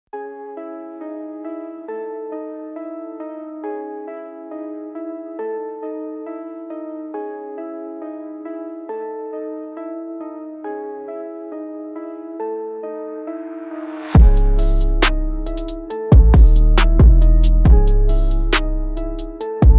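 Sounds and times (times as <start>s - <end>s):
hard dark beat: 14.2s - 19.7s.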